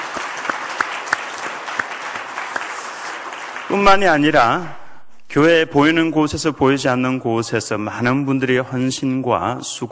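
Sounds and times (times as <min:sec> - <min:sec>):
audience applause: 0:00.0 - 0:03.8
speech: 0:03.7 - 0:09.8.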